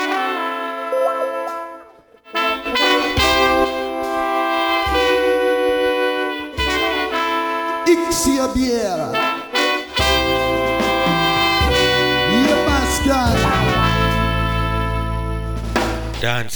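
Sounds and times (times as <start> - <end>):
dancehall music: 0.2 - 5.7, 6.5 - 16.3.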